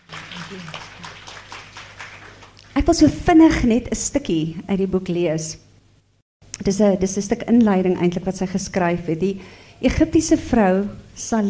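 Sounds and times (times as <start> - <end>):
audience applauding to congratulate a novel's author at a book event: 0.0 - 2.8
speech: 0.5 - 1.1, 2.8 - 5.6, 6.6 - 11.4.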